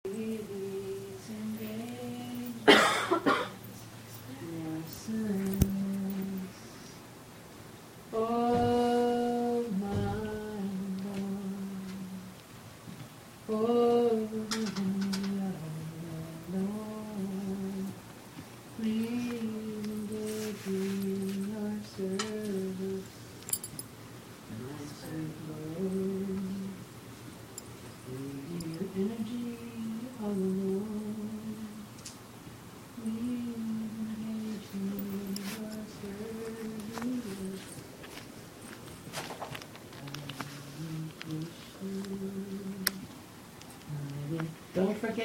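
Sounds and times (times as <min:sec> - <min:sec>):
person singing spontaneously: 0:00.0 - 0:02.8, 0:04.3 - 0:07.1, 0:08.1 - 0:12.4, 0:13.5 - 0:18.0, 0:18.8 - 0:23.2, 0:24.5 - 0:26.9, 0:28.1 - 0:32.0, 0:33.0 - 0:37.8, 0:39.9 - 0:43.2, 0:43.8 - 0:45.1.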